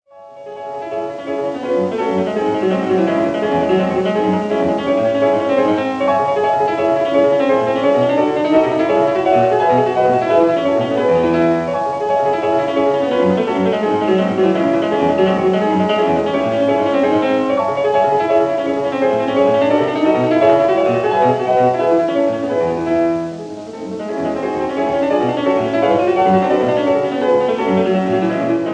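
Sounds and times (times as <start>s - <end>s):
agitato piano piece: 0.1s - 28.7s.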